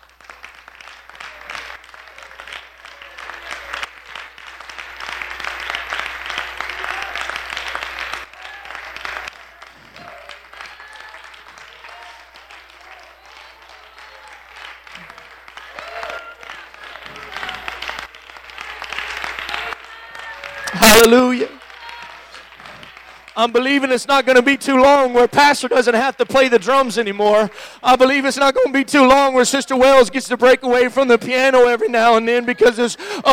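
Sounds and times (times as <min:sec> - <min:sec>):
audience clapping hands: 0:00.0 - 0:28.2, 0:30.4 - 0:33.3
speech: 0:20.9 - 0:21.5, 0:23.4 - 0:33.3.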